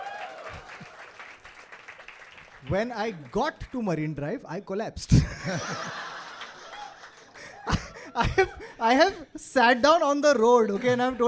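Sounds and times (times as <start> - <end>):
audience applause: 0.0 - 3.3, 6.1 - 7.9
speech: 2.6 - 6.1, 8.2 - 11.2
laughter: 5.1 - 8.8.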